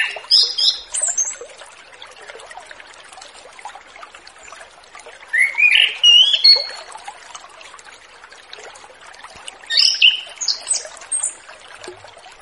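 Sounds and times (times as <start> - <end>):
orange-headed thrush singing repeated whistled notes: 5.4 - 6.8, 9.7 - 10.8.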